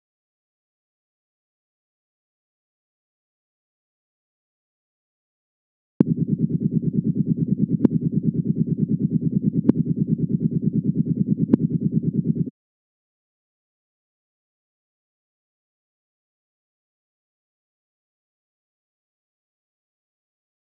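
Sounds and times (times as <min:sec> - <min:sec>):
helicopter: 0:06.0 - 0:12.5.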